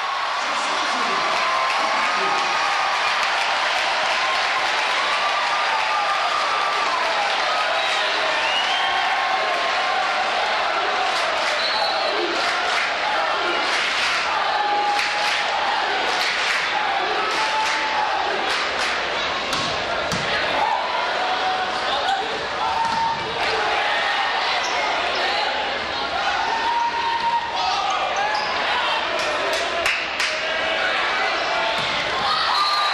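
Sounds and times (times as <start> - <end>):
large arena crowd cheering and clapping: 0.0 - 32.9
shouts and whistles: 7.6 - 9.4, 11.5 - 12.2, 32.3 - 32.9
basketball bouncing and squeaking: 19.5 - 20.4.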